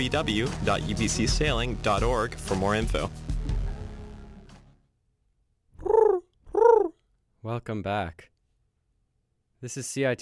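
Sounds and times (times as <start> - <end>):
speech: 0.0 - 3.4, 7.5 - 8.3, 9.6 - 10.2
human voice imitating pigeon coos: 5.8 - 7.0.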